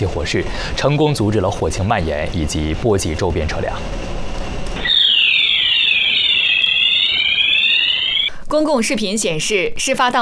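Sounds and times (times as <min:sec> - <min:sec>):
speech: 0:00.0 - 0:04.2, 0:08.5 - 0:10.1
smoke alarm sounding in an underground garage: 0:04.8 - 0:08.3.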